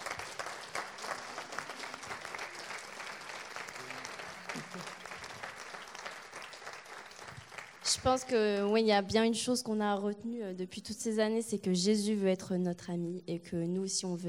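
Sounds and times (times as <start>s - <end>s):
audience applause: 0.0s - 8.0s
speech: 7.9s - 14.2s.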